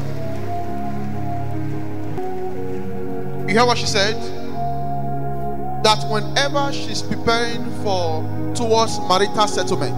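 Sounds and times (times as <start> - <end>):
audience clapping: 0.0 - 3.5
sustained keyboard or organ chords: 0.0 - 9.9
speech: 3.5 - 4.4, 5.8 - 9.9.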